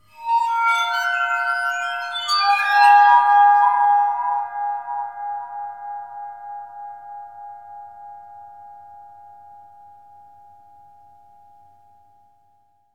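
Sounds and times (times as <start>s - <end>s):
waterphone: 0.1s - 7.0s.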